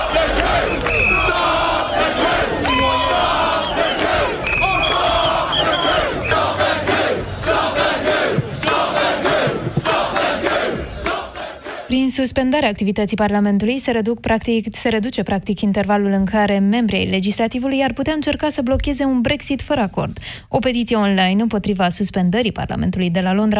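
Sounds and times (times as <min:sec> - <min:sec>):
protest crowd shouting and chanting in the street: 0:00.0 - 0:11.9
speech: 0:12.1 - 0:23.5.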